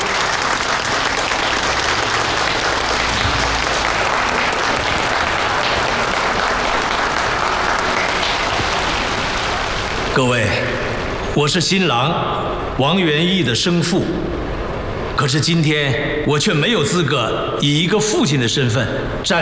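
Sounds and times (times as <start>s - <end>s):
crowd applauding: 0.0s - 11.3s
speech: 10.2s - 10.7s, 11.4s - 14.4s, 15.2s - 19.4s.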